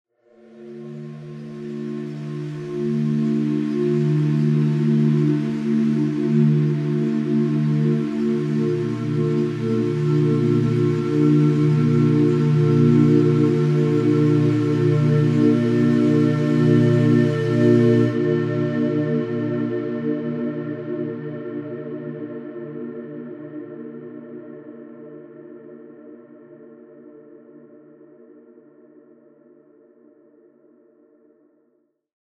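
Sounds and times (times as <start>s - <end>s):
synth pad: 0.3s - 24.6s.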